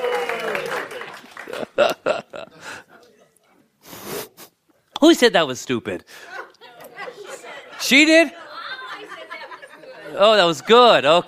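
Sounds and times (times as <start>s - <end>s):
voices cheering and whooping: 0.0s - 1.0s
crowd clapping: 0.0s - 2.2s
laughter: 0.9s - 3.4s, 6.1s - 11.2s
speech: 5.0s - 6.4s, 7.9s - 8.4s, 10.1s - 11.2s.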